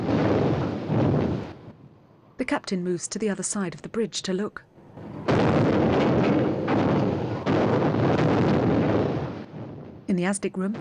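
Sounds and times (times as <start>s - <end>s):
depth charge exploding in the sea: 0.0s - 1.8s, 5.0s - 10.1s
speech: 2.4s - 5.2s, 10.1s - 10.7s.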